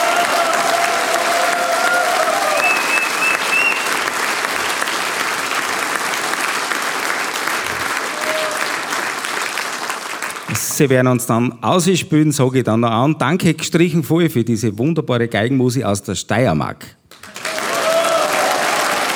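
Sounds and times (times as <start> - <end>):
audience applause: 0.0 - 10.7, 17.1 - 19.1
speech: 10.8 - 17.0.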